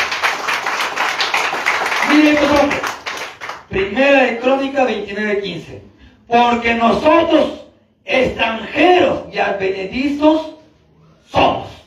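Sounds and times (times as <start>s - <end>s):
clapping: 0.0s - 3.7s
speech: 3.7s - 10.5s, 11.3s - 11.7s.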